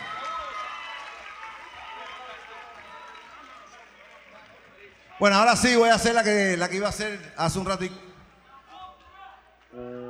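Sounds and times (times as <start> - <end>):
audience applause at live concert: 0.0 - 8.0
speech: 5.2 - 8.1.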